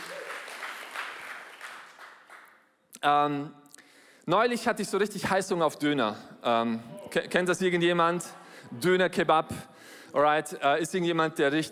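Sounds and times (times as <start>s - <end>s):
audience applause: 0.0s - 2.5s
speech: 3.0s - 3.6s, 4.3s - 11.7s.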